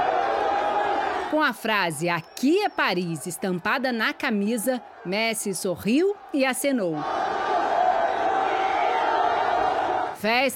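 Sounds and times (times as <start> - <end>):
fans cheering wildly at airport: 0.0 - 10.2
speech: 1.3 - 7.4, 10.2 - 10.5.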